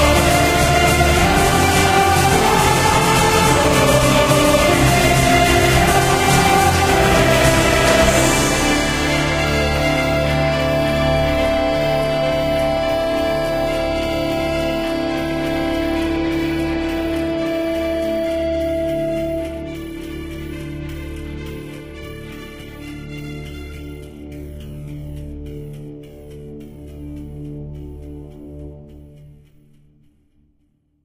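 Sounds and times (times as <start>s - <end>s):
orchestra: 0.0s - 24.3s.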